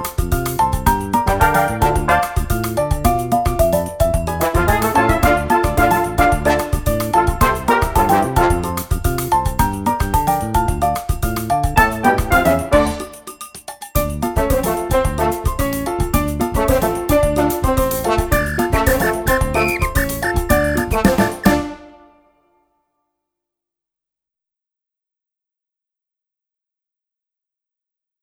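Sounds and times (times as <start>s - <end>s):
samba instrumental: 0.0s - 22.4s.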